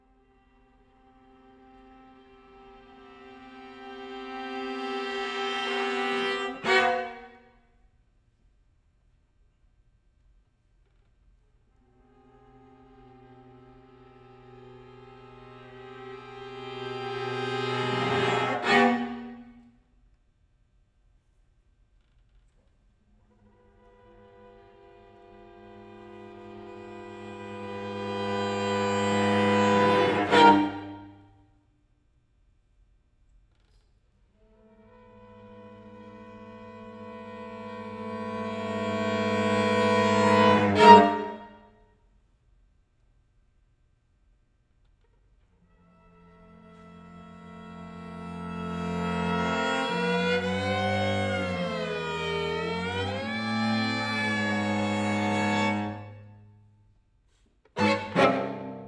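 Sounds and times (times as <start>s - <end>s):
string quartet: 0.0s - 7.5s, 11.8s - 19.6s, 23.2s - 31.3s, 34.4s - 41.7s, 45.6s - 56.5s, 57.4s - 58.8s.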